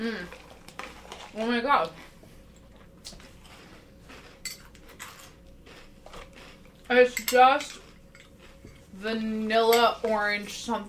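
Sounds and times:
speech: 0.0 - 0.4, 1.3 - 2.1, 6.9 - 7.8, 9.0 - 10.8
crunchy cereal being eaten: 0.1 - 9.5
spoon clinking against a bowl: 4.4 - 4.7, 7.2 - 8.8, 9.7 - 10.0.

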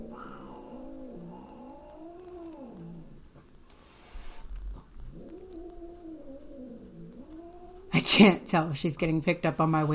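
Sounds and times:
angry cat growling and yowling: 0.0 - 3.3, 4.8 - 8.0
speech: 8.0 - 9.9.

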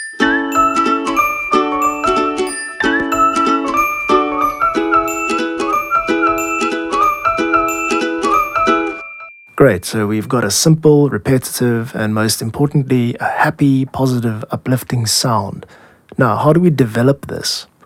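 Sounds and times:
ukulele: 0.0 - 9.2
whistle: 0.0 - 9.6
glockenspiel: 0.0 - 9.7
speech: 9.6 - 17.7.

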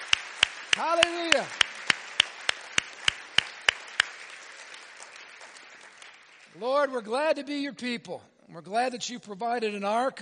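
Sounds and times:
audience applause: 0.0 - 6.6
speech: 0.8 - 1.6, 6.6 - 10.2.

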